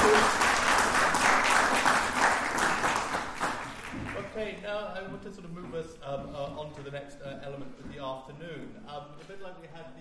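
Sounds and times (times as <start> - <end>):
audience applause: 0.0 - 4.3
speech: 5.2 - 9.9.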